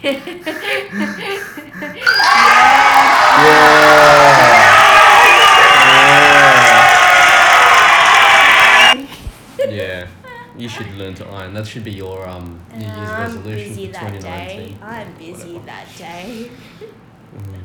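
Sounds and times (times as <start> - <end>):
speech: 0.0 - 2.4, 11.6 - 17.6
laughter: 0.0 - 9.0
round of applause: 2.0 - 9.0.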